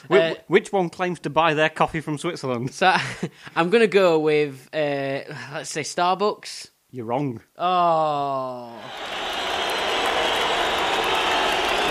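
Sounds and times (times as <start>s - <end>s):
speech: 0.0s - 9.4s
large crowd booing: 8.8s - 11.8s.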